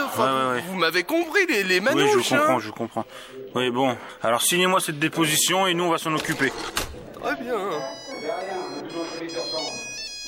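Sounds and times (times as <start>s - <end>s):
speech: 0.2s - 8.6s
mobile phone ringtone: 7.2s - 10.2s.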